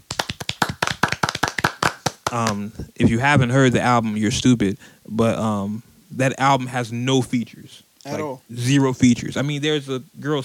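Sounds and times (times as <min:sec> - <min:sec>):
hand clapping: 0:00.0 - 0:02.8
speech: 0:02.3 - 0:10.4.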